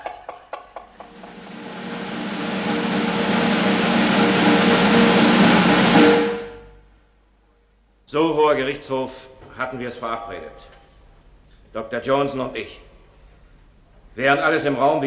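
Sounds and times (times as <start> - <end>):
rapid drumroll of knocking: 0.0 - 6.7
speech: 8.1 - 10.8, 11.7 - 12.9, 14.2 - 15.0.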